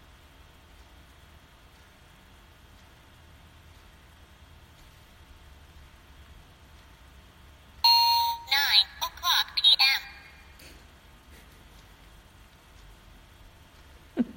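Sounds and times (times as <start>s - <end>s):
clock chiming: 7.9s - 9.4s.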